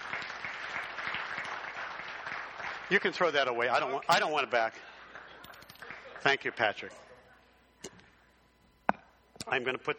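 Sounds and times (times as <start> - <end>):
audience applause for a guest at a Christian gathering: 0.0 - 3.4
speech: 2.9 - 4.9, 6.2 - 7.0, 9.5 - 9.9.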